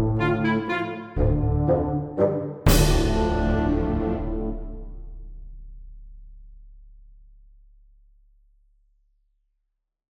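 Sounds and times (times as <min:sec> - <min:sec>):
epic orchestral music: 0:00.0 - 0:05.4.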